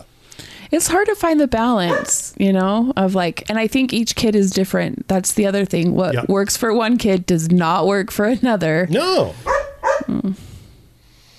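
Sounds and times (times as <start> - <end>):
speech: 0.7 - 9.5, 10.2 - 10.5
dog barking: 1.8 - 2.2, 9.4 - 10.1.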